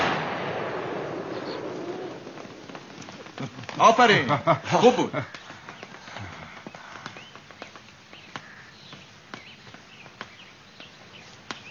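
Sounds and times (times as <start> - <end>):
gunfire volley: 0.0 - 3.9
speech: 3.4 - 5.4
laughter: 3.4 - 5.6.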